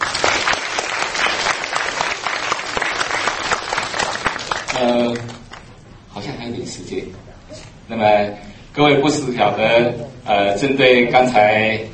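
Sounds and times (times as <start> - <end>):
audience applause: 0.0 - 5.6
speech: 6.7 - 11.9.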